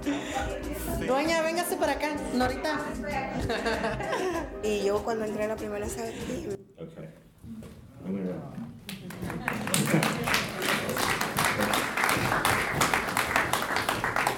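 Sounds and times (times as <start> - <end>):
speech: 0.4 - 7.0, 8.1 - 8.6
laughter: 3.3 - 4.6, 9.3 - 10.5
applause: 8.9 - 14.3.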